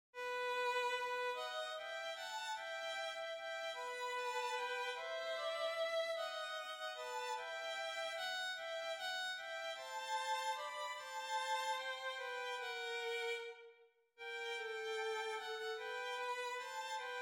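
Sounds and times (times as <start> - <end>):
violins: 0.2 - 17.1.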